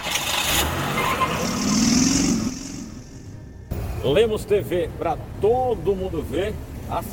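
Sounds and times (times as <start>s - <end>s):
cars passing in city street traffic: 0.0s - 7.1s
speech: 4.0s - 7.1s.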